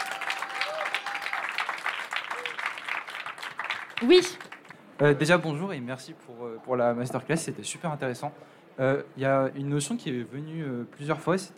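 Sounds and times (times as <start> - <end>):
audience applause: 0.0 - 4.8
speech: 4.0 - 11.5.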